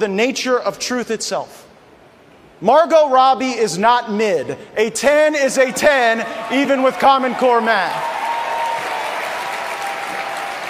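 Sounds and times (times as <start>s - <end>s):
speech: 0.0s - 1.7s, 2.6s - 8.1s
raucous applause from an audience: 5.8s - 10.6s.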